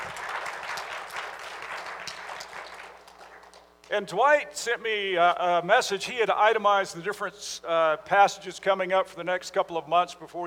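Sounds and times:
audience applause: 0:00.0 - 0:03.7
speech: 0:03.9 - 0:10.4.

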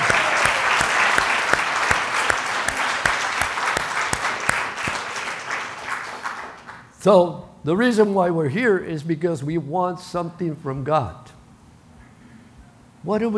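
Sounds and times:
audience applause: 0:00.0 - 0:06.9
speech: 0:07.0 - 0:11.2, 0:13.0 - 0:13.3.

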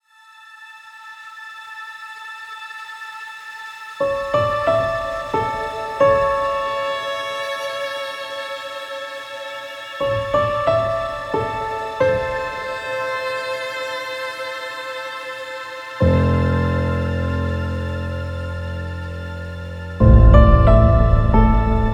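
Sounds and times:
sad soul music: 0:04.0 - 0:21.9.

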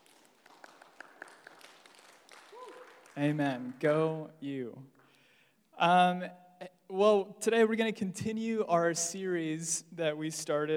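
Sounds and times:
audience applause: 0:00.0 - 0:04.2
rising cheer: 0:00.4 - 0:03.7
speech: 0:03.2 - 0:05.0, 0:05.8 - 0:10.7.

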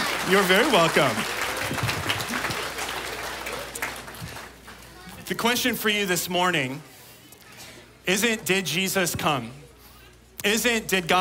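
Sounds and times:
round of applause: 0:00.0 - 0:05.0
speech: 0:00.3 - 0:01.9, 0:05.3 - 0:06.9, 0:08.0 - 0:09.6, 0:10.4 - 0:11.2.

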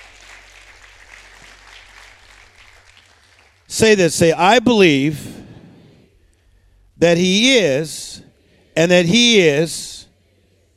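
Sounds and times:
crowd clapping hands: 0:00.0 - 0:04.1
speech: 0:03.7 - 0:05.4, 0:07.0 - 0:10.1.

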